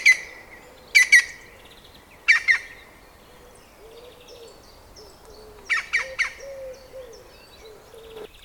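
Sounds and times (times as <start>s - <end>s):
green woodpecker: 0.0s - 8.4s.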